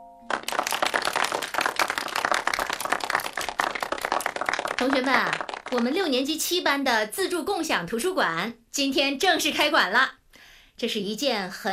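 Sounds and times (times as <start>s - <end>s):
audience applause: 0.3s - 6.0s
speech: 4.8s - 10.2s, 10.8s - 11.7s.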